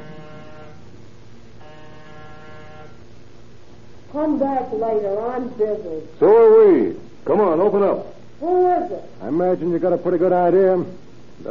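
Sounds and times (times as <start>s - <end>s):
apartment door buzzer: 0.0s - 1.0s, 1.6s - 3.1s
speech: 4.1s - 11.5s.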